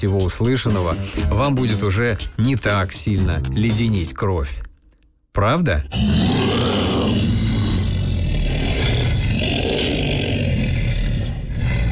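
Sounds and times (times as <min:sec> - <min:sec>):
speech: 0:00.0 - 0:04.7, 0:05.4 - 0:06.4
man imitating a monster roar: 0:05.9 - 0:11.8.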